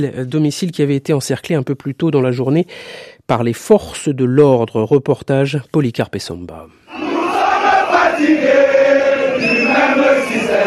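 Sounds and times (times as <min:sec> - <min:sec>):
speech: 0:00.0 - 0:06.9
crowd of thousands singing: 0:06.9 - 0:10.6.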